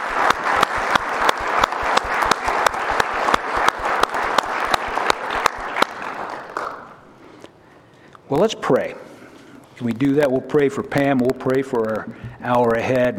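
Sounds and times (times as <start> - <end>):
audience round of applause: 0.0 - 7.0
speech: 8.3 - 9.0, 9.8 - 13.1.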